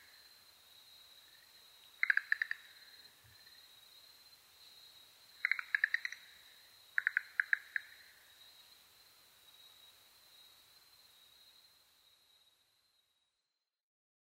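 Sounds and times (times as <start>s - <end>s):
Schlegel's green tree frog calling: 2.0s - 3.1s, 5.4s - 8.3s.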